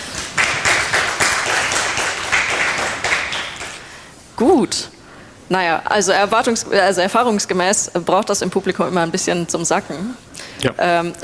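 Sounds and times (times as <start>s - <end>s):
audience applause: 0.0s - 4.1s
speech: 4.4s - 11.2s.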